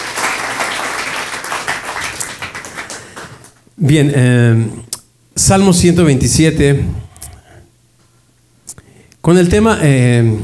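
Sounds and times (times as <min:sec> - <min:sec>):
audience applause: 0:00.0 - 0:03.6
speech: 0:03.8 - 0:07.1, 0:09.2 - 0:10.4.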